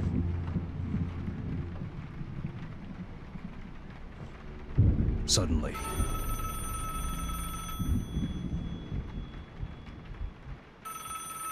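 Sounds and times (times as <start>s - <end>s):
low rumbling background: 0.0s - 10.9s
speech: 5.3s - 6.2s
telephone ringing: 5.8s - 9.5s, 10.8s - 11.5s.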